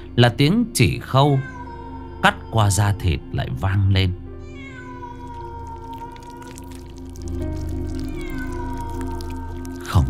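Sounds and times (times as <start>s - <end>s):
speech: 0.2s - 1.5s, 2.2s - 4.2s
cat meowing mournfully: 1.1s - 3.3s, 4.4s - 10.0s.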